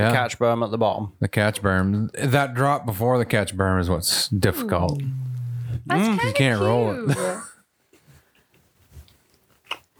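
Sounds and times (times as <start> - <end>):
speech: 0.0 - 7.5
person chewing food: 8.0 - 9.9.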